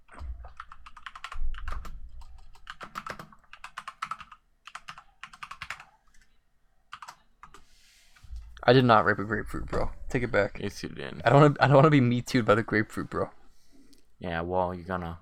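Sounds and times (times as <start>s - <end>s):
fingers typing on a computer keyboard: 0.0s - 7.6s
speech: 8.7s - 13.4s, 14.2s - 15.2s.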